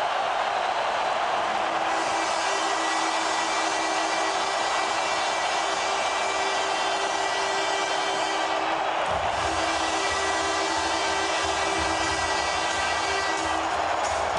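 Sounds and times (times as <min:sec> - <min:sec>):
crowd cheering: 0:00.0 - 0:14.3
arena horn blaring at end of hockey game: 0:01.3 - 0:14.3.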